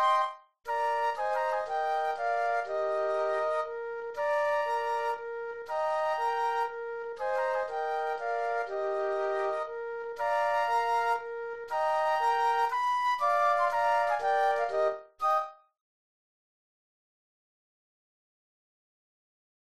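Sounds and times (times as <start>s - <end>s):
flute trio playing: 0.0s - 15.6s.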